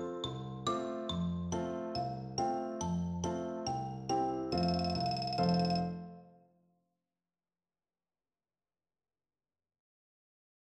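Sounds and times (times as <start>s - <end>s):
percussion: 0.0s - 6.0s.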